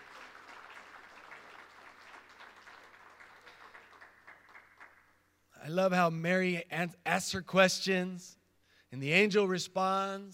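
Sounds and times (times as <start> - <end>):
audience applause: 0.0 - 5.1
speech: 5.7 - 10.3.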